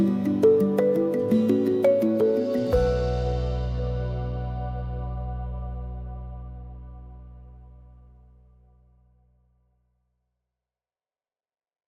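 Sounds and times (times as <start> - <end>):
percussion: 0.0 - 6.9.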